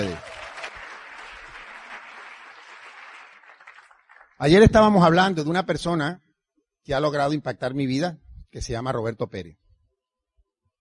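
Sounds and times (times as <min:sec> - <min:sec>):
audience applause: 0:00.0 - 0:04.5
speech: 0:04.4 - 0:06.2, 0:06.8 - 0:09.6.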